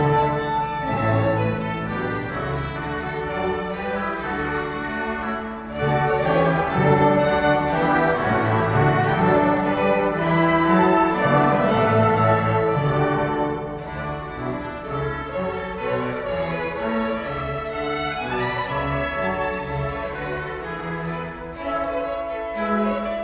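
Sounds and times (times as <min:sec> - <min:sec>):
orchestra playing a gavotte: 0:00.0 - 0:23.2.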